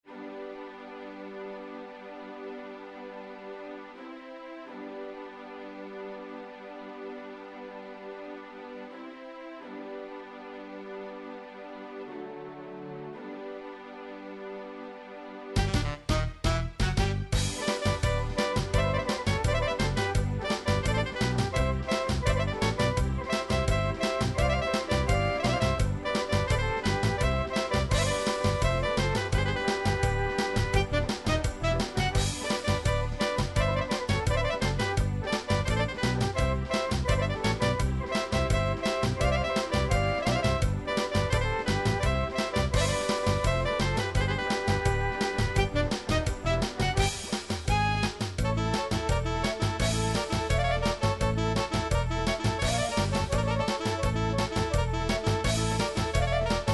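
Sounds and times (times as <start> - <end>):
fast Serbian kiuchek folk music, MIDI: 15.6 - 56.7.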